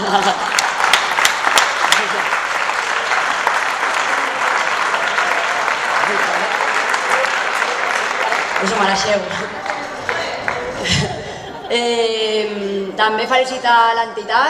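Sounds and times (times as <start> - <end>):
laughter: 0.0 - 0.8, 4.9 - 12.8
audience applause: 0.0 - 11.7
speech: 0.1 - 0.6, 8.6 - 9.7, 11.7 - 14.4.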